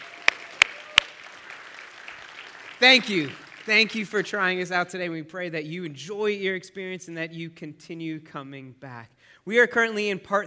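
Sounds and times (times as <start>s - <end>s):
round of applause: 0.0s - 4.2s
speech: 2.8s - 10.4s.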